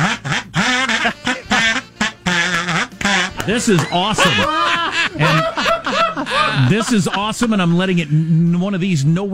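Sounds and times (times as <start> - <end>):
kazoo being hummed loudly: 0.0 - 3.8
laughter: 0.0 - 8.4
speech: 3.5 - 5.7, 6.3 - 9.3.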